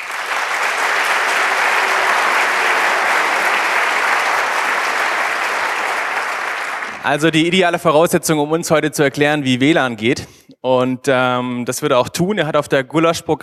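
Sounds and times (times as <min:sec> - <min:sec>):
audience applause: 0:00.0 - 0:07.3
speech: 0:07.0 - 0:13.4.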